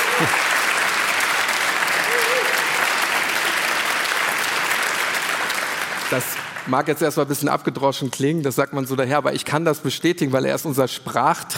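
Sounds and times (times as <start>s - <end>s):
applause: 0.0s - 7.5s
speech: 0.2s - 0.5s, 6.1s - 11.5s.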